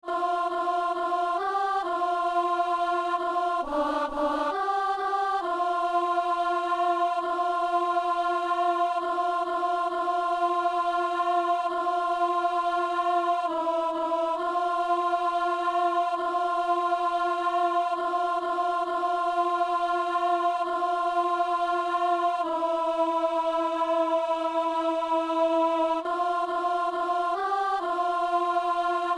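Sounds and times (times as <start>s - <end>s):
alto singing a psalm: 0.0s - 29.1s.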